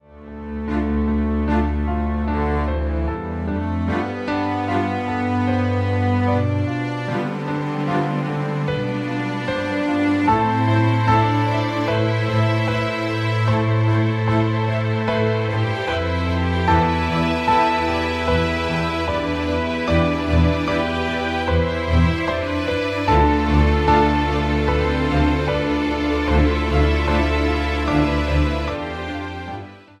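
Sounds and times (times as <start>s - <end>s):
sentimental melody: 0.0s - 29.9s.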